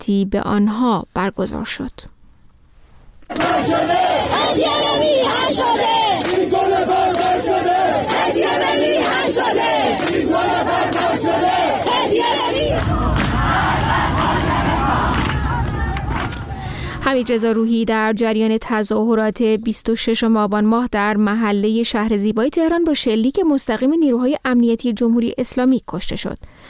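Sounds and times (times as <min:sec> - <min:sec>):
speech: 0:00.0 - 0:02.2, 0:03.3 - 0:07.0, 0:17.0 - 0:26.6
crowd chanting protest slogans: 0:03.3 - 0:17.0.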